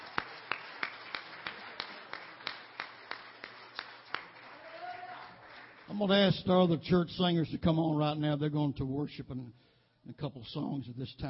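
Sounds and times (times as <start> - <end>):
audience clapping in unison: 0.0 - 6.8
speech: 5.9 - 11.2.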